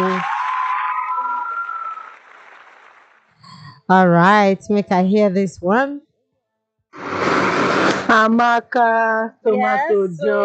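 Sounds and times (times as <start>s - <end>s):
clapping: 0.0s - 3.3s
speech: 3.9s - 6.0s, 8.1s - 10.4s.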